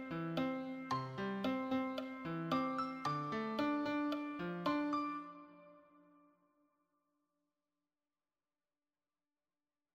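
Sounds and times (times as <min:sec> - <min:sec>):
solo piano: 0:00.0 - 0:05.8.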